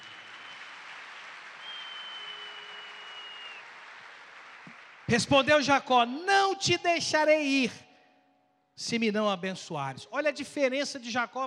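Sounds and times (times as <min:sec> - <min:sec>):
audience applause: 0:00.0 - 0:05.2
speech: 0:05.1 - 0:07.9, 0:08.8 - 0:11.4.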